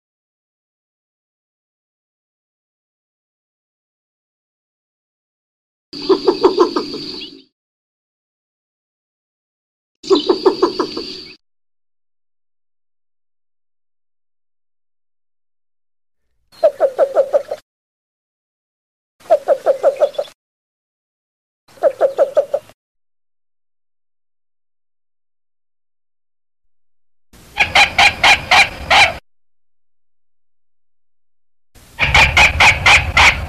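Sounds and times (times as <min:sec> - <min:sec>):
marsh bird calls played back: 0:06.0 - 0:07.5, 0:10.0 - 0:11.4, 0:16.5 - 0:17.6, 0:19.2 - 0:20.4, 0:21.7 - 0:22.8, 0:27.4 - 0:29.2, 0:31.9 - 0:33.4.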